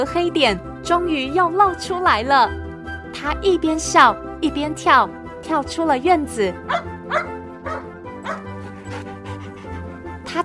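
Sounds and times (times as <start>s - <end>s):
speech: 0.0s - 7.3s
dog barking: 6.7s - 9.8s.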